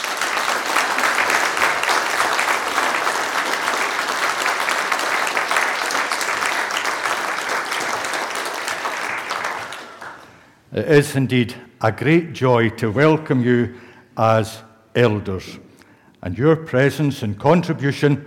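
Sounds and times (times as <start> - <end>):
audience applause: 0.0 - 10.4
speech: 10.8 - 15.6, 16.2 - 18.2.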